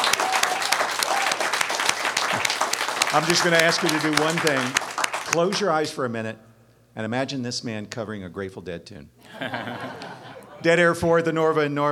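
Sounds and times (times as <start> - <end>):
live audience applause at a holiday concert: 0.0 - 5.5
speech: 3.1 - 11.9
laughter: 9.2 - 10.8.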